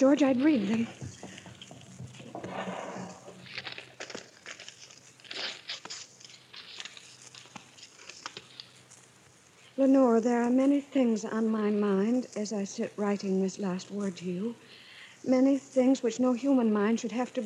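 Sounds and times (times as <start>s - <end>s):
speech: 0.0s - 1.2s, 9.8s - 17.4s
sealed paper envelope being opened: 0.2s - 9.1s.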